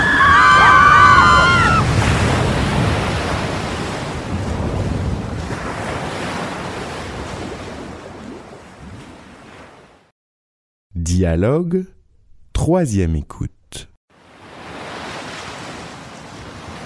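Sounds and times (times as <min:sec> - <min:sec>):
sea waves surging around a sinking boat: 0:00.0 - 0:10.1, 0:14.2 - 0:16.8
speech: 0:11.2 - 0:12.0, 0:12.6 - 0:13.9.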